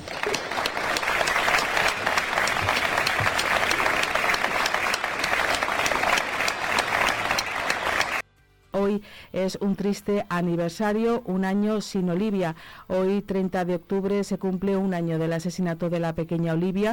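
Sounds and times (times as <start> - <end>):
crowd applause: 0.0 - 8.2
speech: 8.9 - 16.9.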